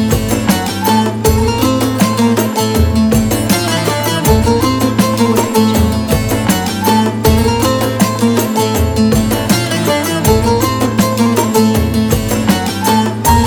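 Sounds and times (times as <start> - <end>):
energetic upbeat ethnic Turkish Anatolian music: 0.0 - 13.4.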